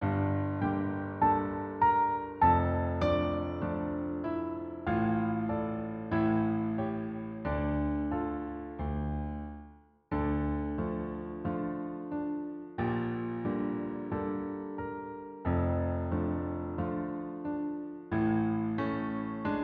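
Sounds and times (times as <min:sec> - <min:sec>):
instrumental music: 0:00.0 - 0:19.6.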